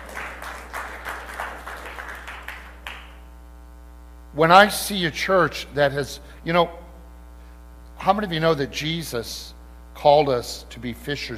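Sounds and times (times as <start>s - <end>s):
audience applause and clapping: 0.0s - 3.2s
speech: 4.4s - 6.8s, 8.0s - 11.3s.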